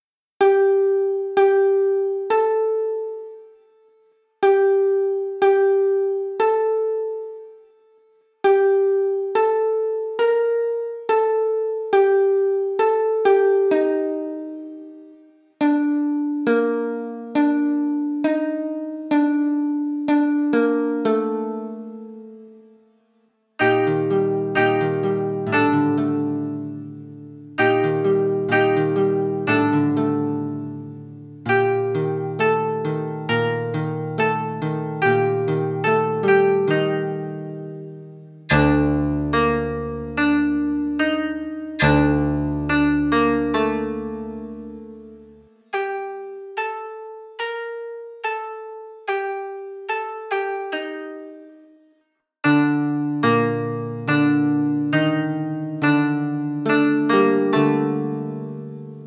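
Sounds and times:
koto duet: 0.4s - 3.5s, 4.4s - 7.6s, 8.4s - 22.5s, 23.6s - 51.8s, 52.4s - 59.0s.

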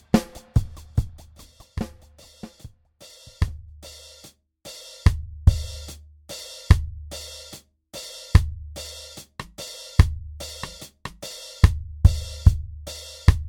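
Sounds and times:
dub drum kit: 0.0s - 4.0s, 5.0s - 6.0s, 6.7s - 7.3s, 8.3s - 13.4s.

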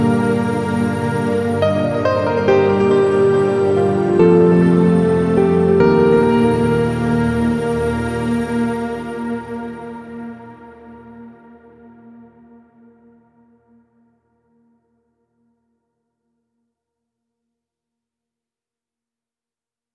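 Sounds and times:
royal piano: 0.0s - 13.8s.

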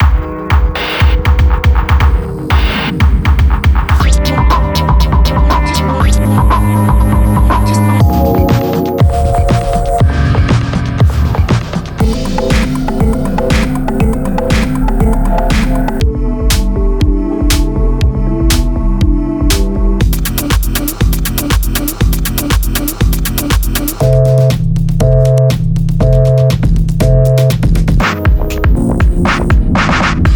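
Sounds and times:
electronica music: 0.0s - 30.3s.

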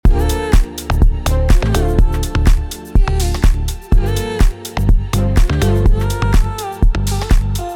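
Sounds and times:
house music: 0.0s - 7.7s.

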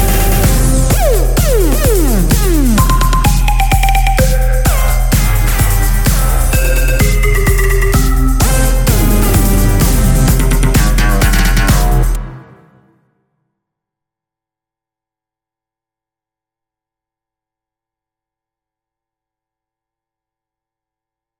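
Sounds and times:
EDM riff: 0.0s - 13.0s.

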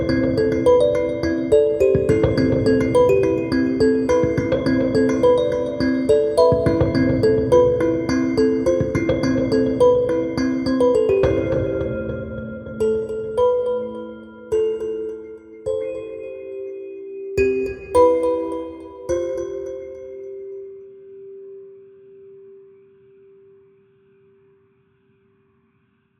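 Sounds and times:
dark kalimba: 0.0s - 20.8s.

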